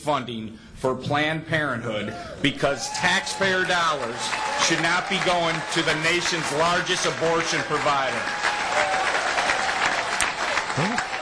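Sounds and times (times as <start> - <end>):
speech: 0.0 - 8.5
audience applause: 2.7 - 11.2.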